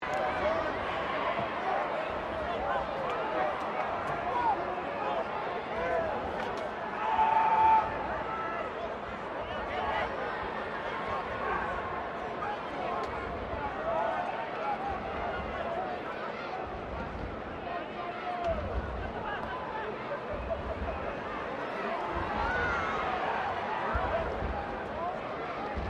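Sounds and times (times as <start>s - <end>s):
15000-strong crowd ambience at a Rugby World Cup game: 0.0s - 25.8s.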